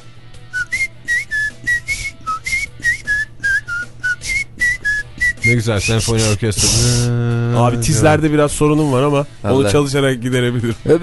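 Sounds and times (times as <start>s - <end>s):
person whistling a lively melody: 0.5s - 6.9s
speech: 5.5s - 11.0s.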